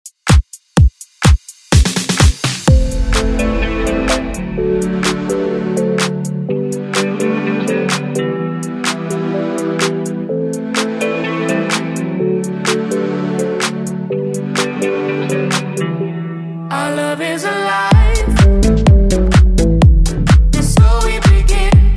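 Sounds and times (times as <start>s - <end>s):
dance music: 0.3s - 21.9s.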